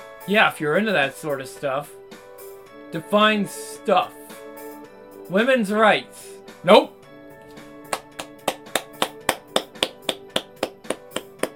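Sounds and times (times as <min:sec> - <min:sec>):
speech: 0:00.2 - 0:02.0, 0:02.9 - 0:04.2, 0:05.3 - 0:06.9
man clapping: 0:07.8 - 0:11.5.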